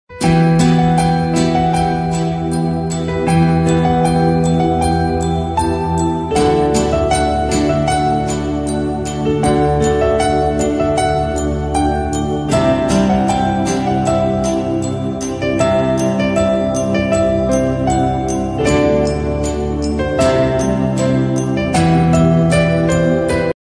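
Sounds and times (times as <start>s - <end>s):
slowed instrumental ringtone: 0.2s - 23.3s.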